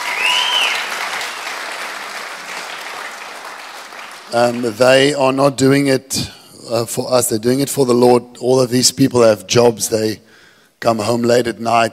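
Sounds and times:
high whistle or cheer: 0.0s - 1.9s
audience clapping: 0.0s - 5.2s
speech: 4.3s - 11.9s.

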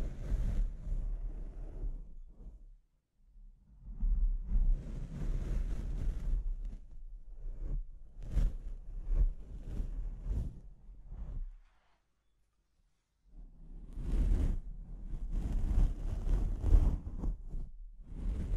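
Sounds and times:
harsh microphone scratching and rubbing: 0.0s - 2.1s, 4.7s - 11.7s, 13.9s - 18.5s.

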